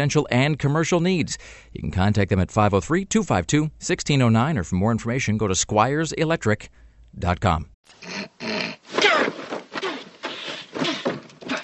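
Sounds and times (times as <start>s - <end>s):
speech: 0.0s - 8.5s
nasal snorts to clear sinuses: 8.0s - 11.6s.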